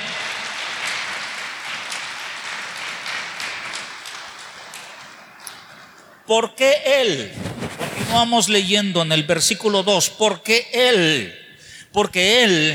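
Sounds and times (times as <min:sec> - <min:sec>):
audience applause: 0:00.0 - 0:06.3
speech: 0:06.3 - 0:07.4, 0:08.1 - 0:12.7.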